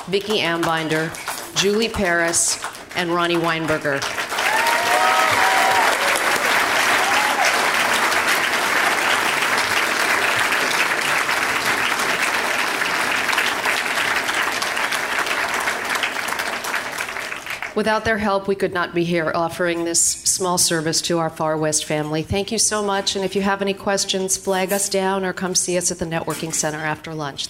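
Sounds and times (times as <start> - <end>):
speech: 0.1 - 4.2, 17.8 - 27.4
audience applause: 2.6 - 17.8.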